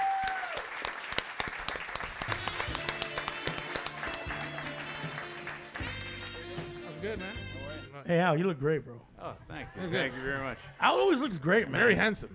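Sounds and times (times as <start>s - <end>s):
scattered cheers and hoots: 0.0s - 0.8s
audience round of applause: 0.0s - 6.6s
speech: 7.1s - 12.3s.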